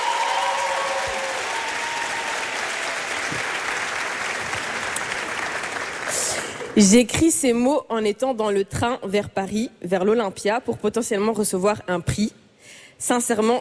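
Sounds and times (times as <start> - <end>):
audience applause at an awards ceremony for nominated artists: 0.0 - 6.8
speech: 6.8 - 12.4, 13.0 - 13.6.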